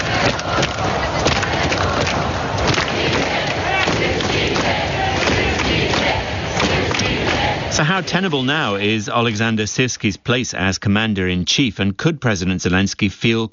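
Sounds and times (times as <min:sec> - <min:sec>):
crowd of demonstrators at a protest in Ukraine chanting and shouting: 0:00.0 - 0:10.4
speech: 0:08.0 - 0:13.5.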